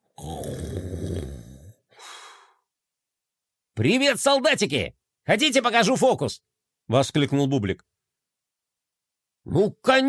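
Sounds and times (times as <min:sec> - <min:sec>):
loud snoring: 0:00.1 - 0:01.8
speech: 0:03.8 - 0:07.9, 0:09.5 - 0:10.0.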